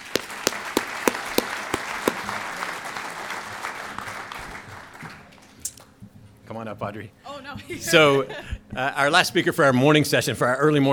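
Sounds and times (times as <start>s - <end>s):
audience applause: 0.0s - 4.9s
speech: 6.6s - 10.9s.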